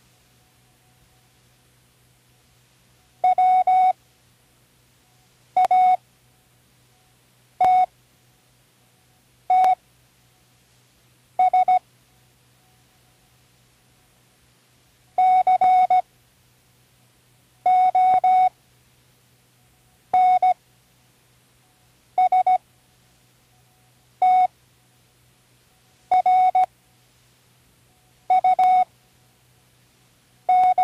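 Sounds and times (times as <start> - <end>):
Morse code spelling words: 3.2 - 3.9, 5.6 - 6.0, 9.5 - 9.8, 15.2 - 16.0, 17.7 - 18.5, 20.2 - 20.6, 22.2 - 22.6, 24.2 - 24.5, 26.1 - 26.7, 28.3 - 28.9, 30.5 - 30.7.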